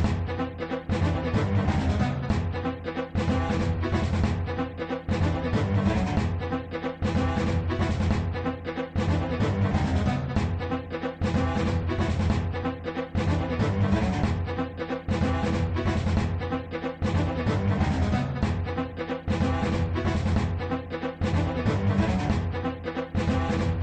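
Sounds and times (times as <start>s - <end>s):
suspense music: 0.0s - 23.8s.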